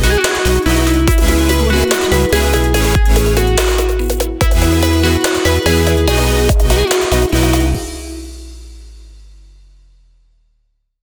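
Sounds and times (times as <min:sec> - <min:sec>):
uplifting future bass music: 0:00.0 - 0:08.7.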